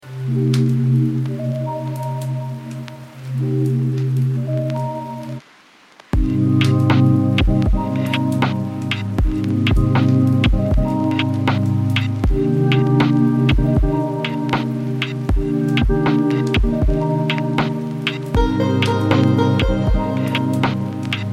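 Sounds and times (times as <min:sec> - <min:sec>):
lofi chill beats: 0:00.0 - 0:05.4, 0:06.2 - 0:21.3.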